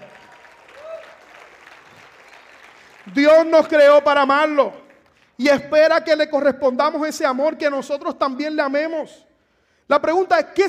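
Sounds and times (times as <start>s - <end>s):
audience applause: 0.0s - 3.8s
speech: 3.1s - 4.8s, 5.4s - 9.3s, 9.9s - 10.6s.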